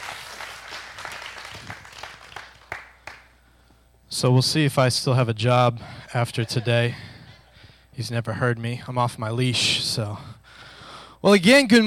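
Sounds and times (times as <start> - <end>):
audience applause welcoming a speaker onto the stage: 0.0 - 3.2
speech: 4.2 - 7.1, 8.0 - 10.3, 11.2 - 11.8.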